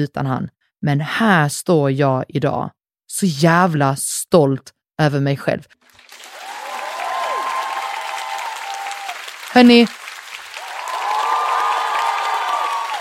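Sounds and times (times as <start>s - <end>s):
speech: 0.0s - 5.8s, 9.5s - 10.0s
clapping applause: 5.9s - 12.9s.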